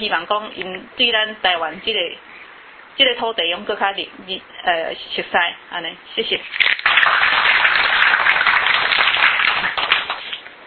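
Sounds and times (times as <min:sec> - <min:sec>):
speech: 0:00.0 - 0:02.3, 0:03.0 - 0:07.3
audience clapping: 0:06.6 - 0:10.5.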